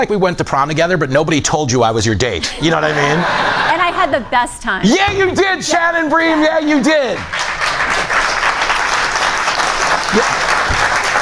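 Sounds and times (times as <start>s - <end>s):
speech: 0.0s - 7.6s
laughter: 2.4s - 5.1s, 9.9s - 11.2s
studio audience applause: 5.7s - 11.2s.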